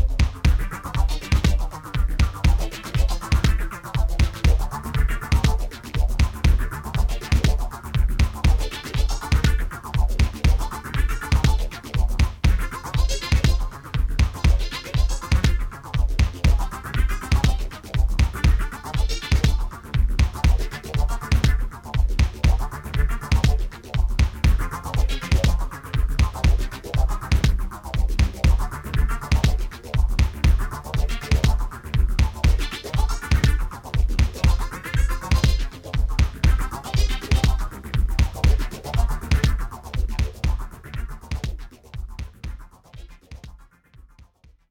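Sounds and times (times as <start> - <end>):
Korg R3 synthesizer: 0.0 - 44.4.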